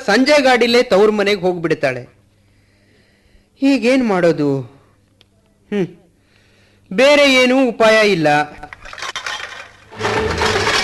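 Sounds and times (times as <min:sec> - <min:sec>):
speech: 0:00.1 - 0:02.2, 0:03.6 - 0:04.8, 0:05.7 - 0:06.0, 0:06.9 - 0:08.8
plates and pots clinking: 0:08.8 - 0:10.8.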